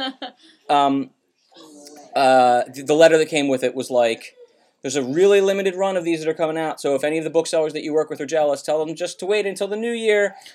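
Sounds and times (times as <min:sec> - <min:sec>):
speech: 0:00.1 - 0:01.2, 0:02.1 - 0:10.5
young child babbling: 0:04.2 - 0:04.6.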